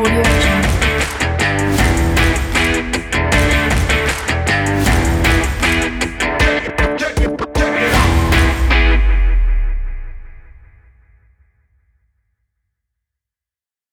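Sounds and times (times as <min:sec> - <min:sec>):
upbeat stomp rock music: 0:00.0 - 0:09.4.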